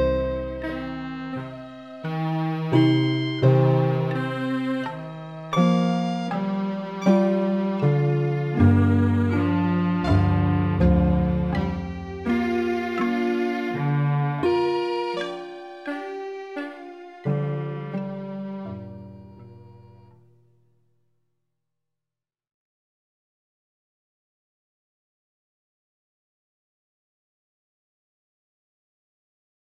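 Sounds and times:
seven equal temperament fractal music chord progressions: 0:00.0 - 0:20.2.

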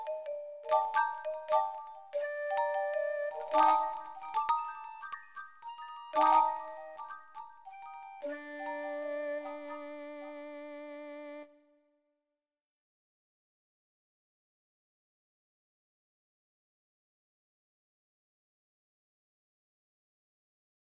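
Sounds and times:
marimba: 0:00.0 - 0:10.2
shakuhachi: 0:02.2 - 0:11.8.

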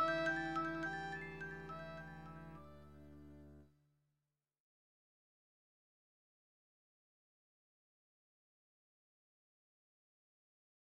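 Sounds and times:
marimba: 0:00.0 - 0:02.4.

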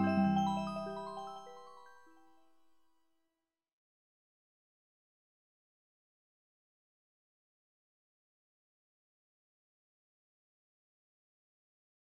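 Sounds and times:
music box: 0:00.0 - 0:02.4.

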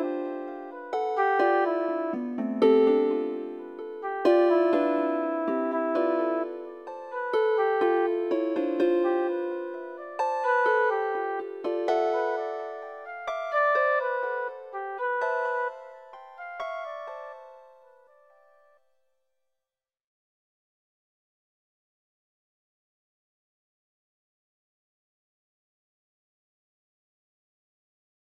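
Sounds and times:
flute chords: 0:00.0 - 0:17.3.

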